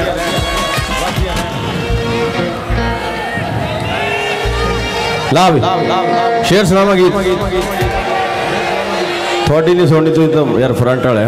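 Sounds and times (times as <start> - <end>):
audience clapping and cheering at a live stage show: 0.0 - 5.6, 6.9 - 10.1
speech: 5.3 - 8.0, 9.5 - 11.2.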